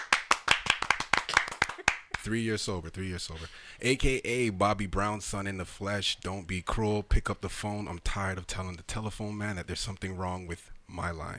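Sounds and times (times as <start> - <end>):
round of applause: 0.0 - 2.3
speech: 2.2 - 11.3.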